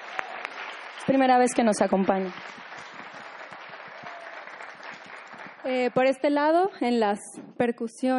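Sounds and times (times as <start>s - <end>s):
audience applause: 0.0s - 6.2s
speech: 1.0s - 2.7s, 5.7s - 8.1s.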